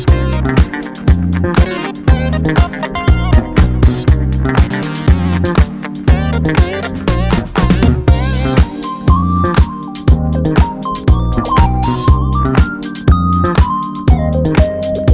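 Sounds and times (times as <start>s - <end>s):
pop funk music: 0.0s - 15.1s.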